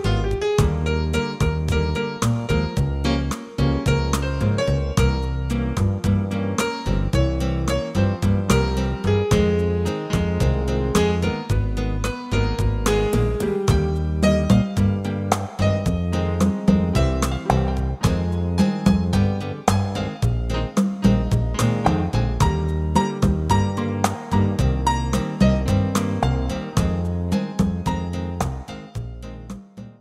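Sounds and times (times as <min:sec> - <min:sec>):
piano playing: 0:00.0 - 0:29.9.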